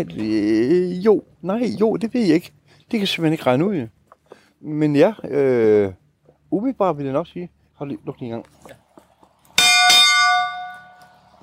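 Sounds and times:
speech: 0.0 - 4.0, 4.6 - 8.8
hand bell ringing for mealtime: 9.6 - 11.2.

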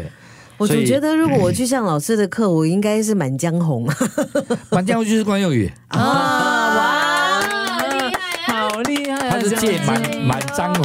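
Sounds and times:
speech: 0.0 - 6.9, 8.9 - 10.8
hands clapping: 7.0 - 10.8.

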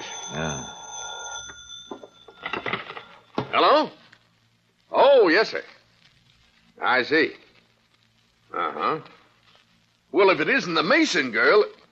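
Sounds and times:
telephone ringing: 0.0 - 3.5
speech: 0.3 - 0.8, 3.6 - 4.0, 5.3 - 5.8, 6.8 - 7.4, 8.5 - 9.2, 10.1 - 11.8.

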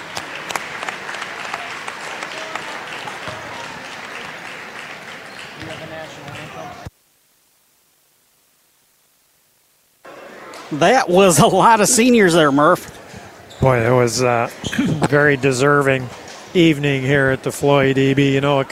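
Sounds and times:
round of applause: 0.0 - 6.9
crowd noise: 0.0 - 7.0, 10.0 - 18.7
speech: 10.7 - 13.0, 13.6 - 18.7.

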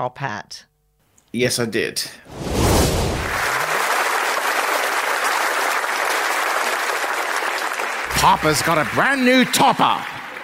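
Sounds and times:
speech: 0.0 - 0.7, 1.3 - 3.0, 8.2 - 10.2
large crowd applauding: 3.1 - 10.4.

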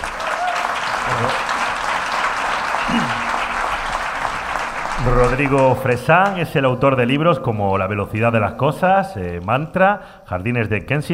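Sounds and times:
audience applause: 0.0 - 6.4
speech: 5.0 - 11.1.

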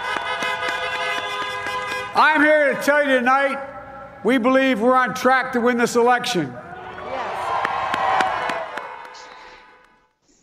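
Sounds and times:
crowd clapping: 0.0 - 2.2, 6.9 - 10.2
crowd blowing horns: 0.0 - 4.2
speech: 2.2 - 6.6.

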